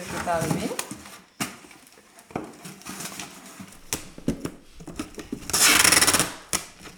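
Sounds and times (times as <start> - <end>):
speech: 0.3 - 0.8
cardboard box thumps and rustles: 3.7 - 6.9
packing tape ripping off the roll: 3.7 - 6.9.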